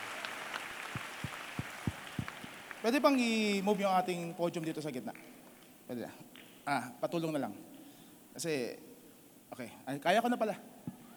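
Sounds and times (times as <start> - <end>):
loud applause from audience: 0.0 - 3.4
speech: 2.8 - 5.3, 5.9 - 7.7, 8.4 - 8.9, 9.5 - 10.7.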